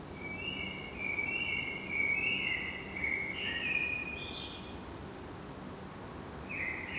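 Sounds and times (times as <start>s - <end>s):
Common blackbird Turdus merula singing: 0.2s - 4.8s, 6.5s - 6.9s.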